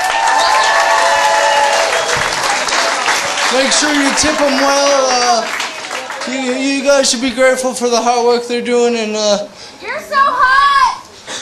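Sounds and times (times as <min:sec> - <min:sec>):
crowd applauding: 0:00.0 - 0:07.2
speech: 0:03.5 - 0:05.6, 0:06.3 - 0:10.7.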